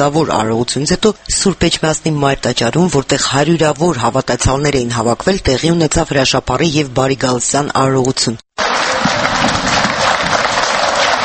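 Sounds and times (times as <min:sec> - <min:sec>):
speech: 0:00.0 - 0:08.4
believers applauding at Etchmiadzin Cathedral: 0:08.6 - 0:11.2.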